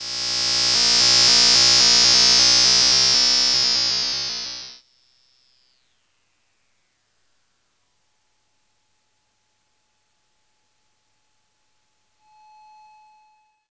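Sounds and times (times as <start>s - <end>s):
twisted electric special effect: 0.0s - 4.8s.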